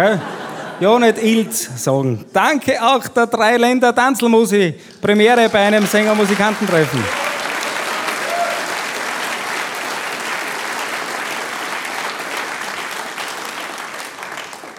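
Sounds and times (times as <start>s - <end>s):
laughter: 0.0s - 1.8s
speech: 0.0s - 7.3s
audience applause: 5.1s - 14.7s.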